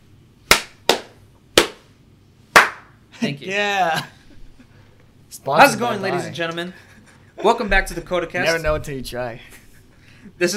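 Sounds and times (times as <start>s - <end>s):
hand clap to sync recording: 0.5s - 1.9s, 2.5s - 3.0s
speech: 3.2s - 4.2s, 5.3s - 9.6s, 10.3s - 10.5s.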